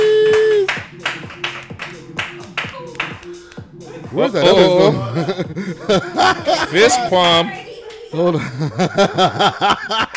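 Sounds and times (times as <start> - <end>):
round of applause: 0.0 - 1.6
laughter: 3.8 - 10.1
speech: 4.2 - 10.0.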